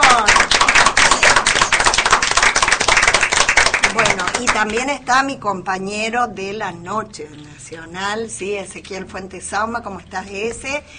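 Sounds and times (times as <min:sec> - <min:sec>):
audience applause: 0:00.0 - 0:04.7
speech: 0:04.6 - 0:10.9.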